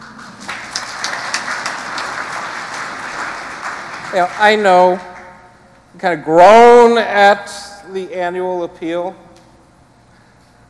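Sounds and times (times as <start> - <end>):
crowd applauding: 0.0 - 5.4
speech: 4.1 - 5.1, 6.0 - 9.3.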